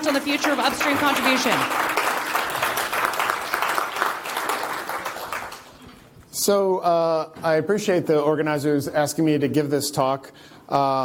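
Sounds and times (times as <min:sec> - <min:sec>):
speech: 0:00.0 - 0:02.0, 0:06.4 - 0:11.0
crowd applauding: 0:00.0 - 0:05.9.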